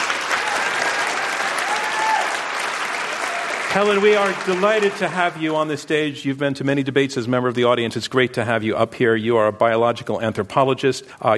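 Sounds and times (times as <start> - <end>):
audience applause welcoming a debater at a live public debate: 0.0 - 5.8
speech: 3.7 - 11.3.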